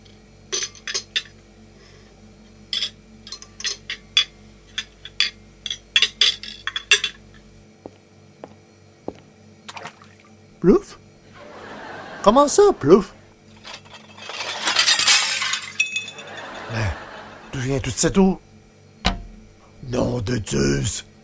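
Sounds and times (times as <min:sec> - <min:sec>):
steady low hum: 0:00.0 - 0:21.2
dishes and cutlery clinking as they are gathered: 0:02.8 - 0:07.2, 0:13.6 - 0:16.6
laughter: 0:11.3 - 0:13.2, 0:16.1 - 0:17.8
speech: 0:12.2 - 0:13.2, 0:17.7 - 0:18.5, 0:19.9 - 0:21.1.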